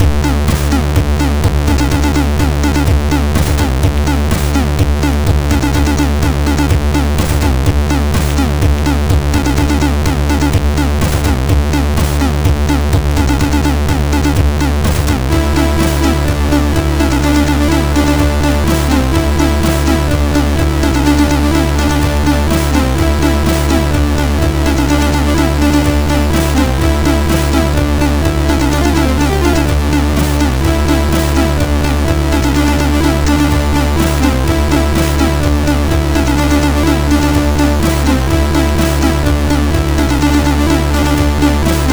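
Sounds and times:
MOS6581R3 SID chip loader tune: 0.0 - 41.9.

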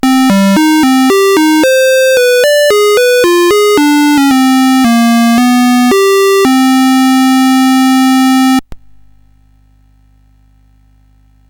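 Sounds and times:
SID chiptune music on CSG8580R5 chip: 0.0 - 8.6.

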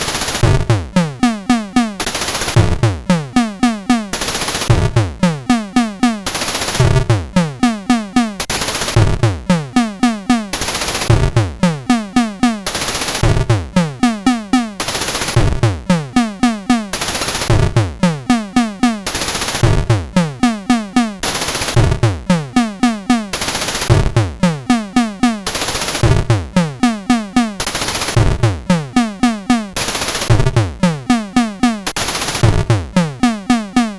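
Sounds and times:
drum demo pattern: 0.0 - 33.9.

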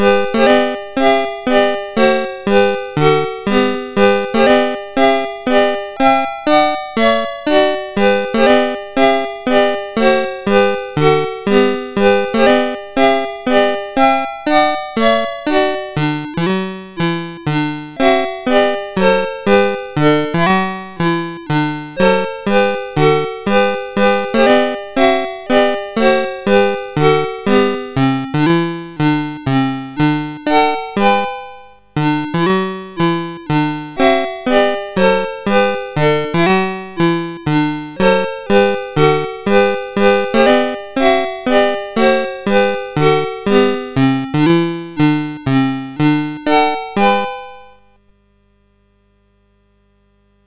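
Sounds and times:
march on a SID MOS6581R4 chip: 0.0 - 47.9.

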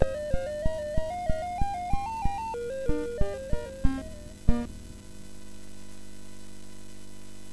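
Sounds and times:
wind effect on MOS 6581R4 sound chip: 0.0 - 4.7.

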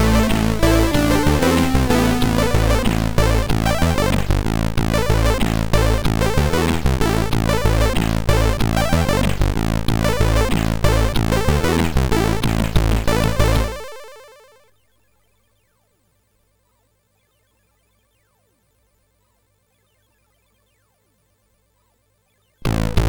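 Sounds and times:
MOS6581R4 SID chip synthesizer music: 0.0 - 14.6, 22.6 - 23.0.

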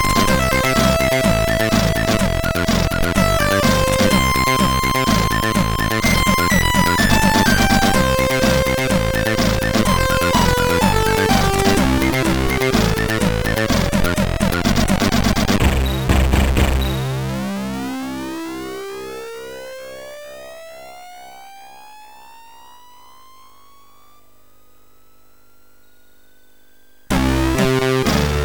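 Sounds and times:
drum sound from MOS6581R3 SID chip: 0.0 - 17.8, 27.1 - 28.4.

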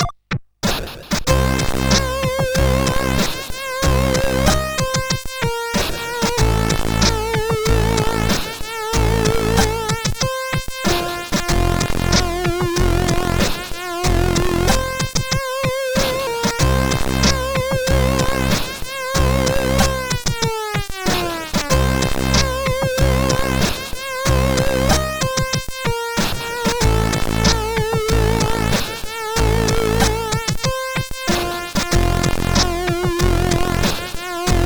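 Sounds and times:
chiptune music from a sound chip: 1.3 - 34.6.

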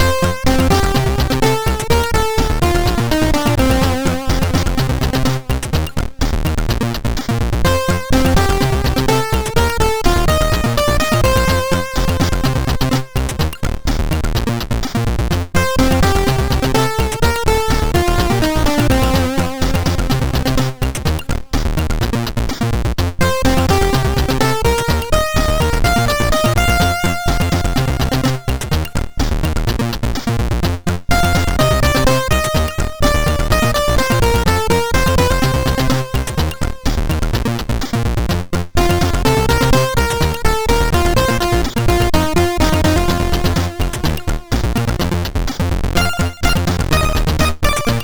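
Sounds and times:
SID chip MOS6581R4 music: 0.0 - 22.6, 23.2 - 30.3, 31.1 - 48.0.

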